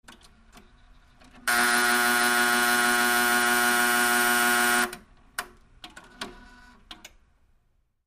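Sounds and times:
machine alarm: 1.5s - 4.9s.

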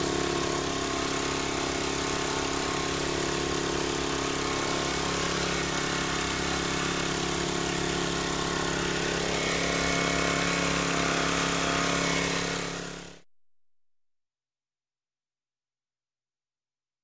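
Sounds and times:
edge trimmer running steady: 0.0s - 13.2s.

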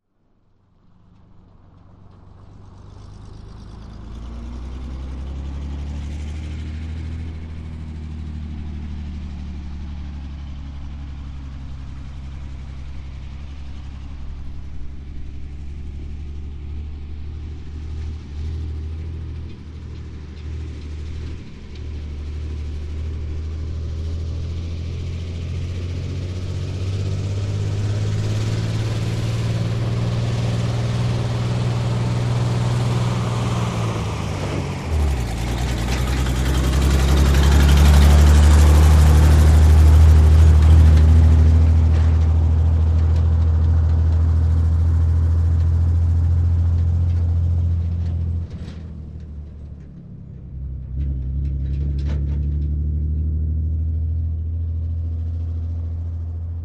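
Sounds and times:
2.5 T truck passing slowly: 0.2s - 56.6s.

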